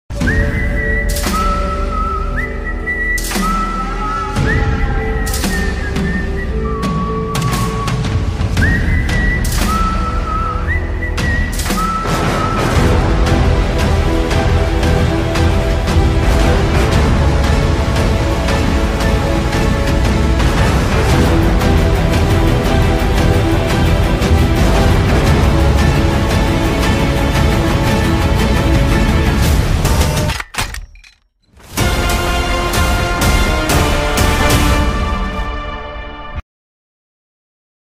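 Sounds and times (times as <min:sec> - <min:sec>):
Tamil mass background music: 0:00.1 - 0:36.4.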